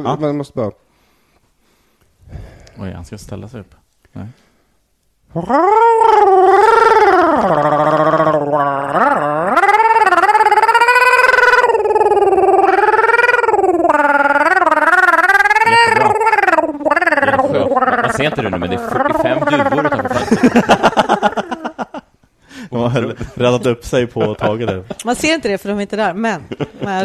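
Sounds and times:
speech: 0.0 - 0.8, 2.3 - 4.5, 5.3 - 6.3, 7.4 - 9.3, 20.3 - 21.4, 23.2 - 27.0
voice imitating gurgling: 5.3 - 20.8
laughter: 17.2 - 22.1, 22.8 - 25.2, 26.4 - 27.0.

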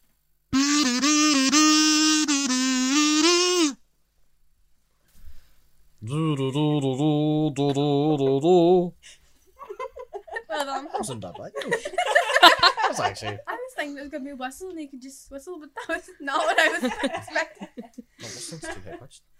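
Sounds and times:
voice imitating a kazoo: 0.6 - 3.8, 6.0 - 8.9
laughter: 9.6 - 13.5, 15.8 - 19.1
speech: 11.1 - 19.3.

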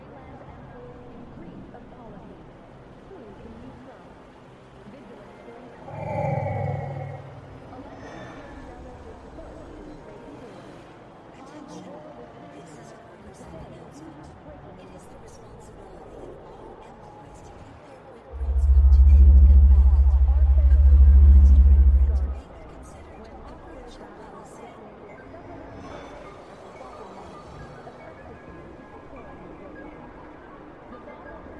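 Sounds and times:
loud deep drone: 5.8 - 7.8, 18.4 - 22.8
steady low hum: 5.8 - 7.9, 18.4 - 22.8
brief tonal call: 18.4 - 22.4.

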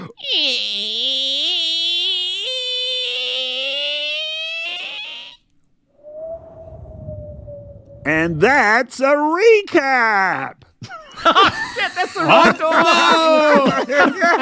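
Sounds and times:
door creaking open: 0.2 - 5.4
speech: 8.1 - 10.6, 11.2 - 14.4
laughter: 10.9 - 14.4.

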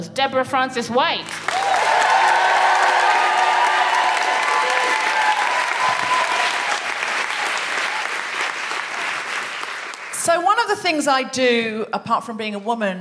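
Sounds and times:
speech: 0.0 - 1.8, 10.7 - 12.9
large audience clapping: 1.2 - 10.4
cheers and whoops: 1.4 - 8.5.

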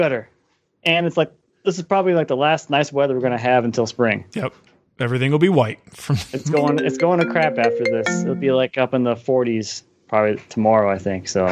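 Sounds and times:
speech: 0.0 - 11.5
laughter: 6.0 - 6.8
incoming phone call ringtone: 6.5 - 8.7.

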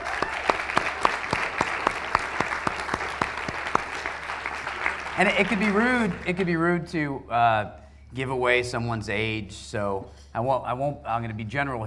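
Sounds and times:
small group clapping as a birthday round of applause: 0.0 - 6.5
speech: 5.2 - 11.8.

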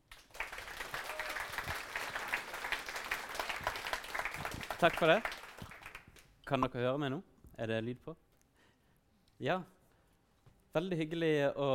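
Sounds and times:
audience applause for the speaker: 0.0 - 6.1
speech: 4.8 - 5.4, 6.5 - 8.2, 9.4 - 9.8, 10.8 - 11.7.

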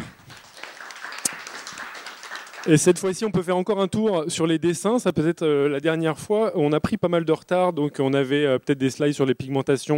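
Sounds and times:
audience applause: 0.0 - 3.2
speech: 2.6 - 9.9.

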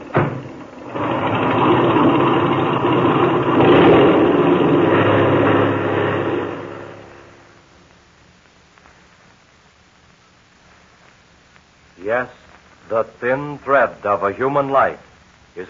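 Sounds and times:
airplane motor revving for takeoff: 0.0 - 7.6
speech: 13.0 - 15.6.

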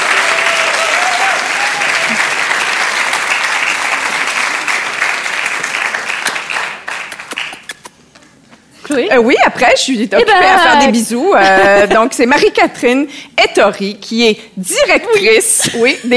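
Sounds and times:
audience applauding loudly: 0.0 - 7.8
speech: 9.0 - 16.1.

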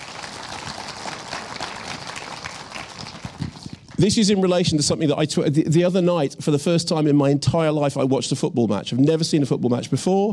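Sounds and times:
round of applause: 0.0 - 4.0
speech: 4.0 - 10.3.

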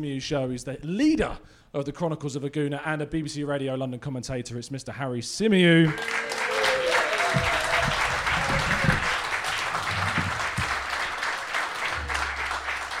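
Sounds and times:
speech: 0.0 - 6.4
whoops: 5.9 - 9.3
audience applause: 5.9 - 12.9
low thumps: 7.3 - 11.1, 11.8 - 12.9.

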